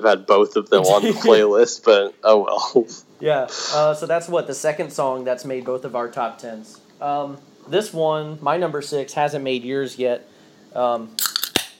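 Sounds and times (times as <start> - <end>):
speech: 0.0 - 11.4
person humming: 0.8 - 1.5
can of sparkling water popping open: 11.2 - 11.7.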